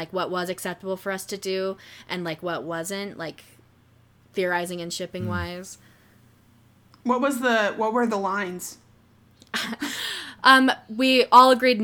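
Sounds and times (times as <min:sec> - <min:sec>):
speech: 0:00.0 - 0:03.6, 0:04.4 - 0:05.9, 0:07.0 - 0:08.8, 0:09.5 - 0:11.8
breath intake: 0:05.2 - 0:05.6.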